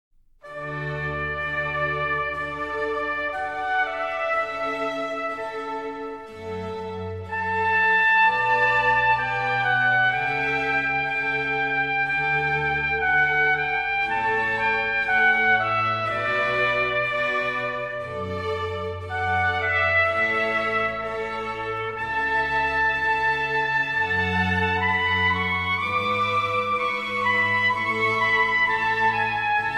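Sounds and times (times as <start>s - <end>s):
trumpet concerto adagio in D major: 0.4s - 29.7s.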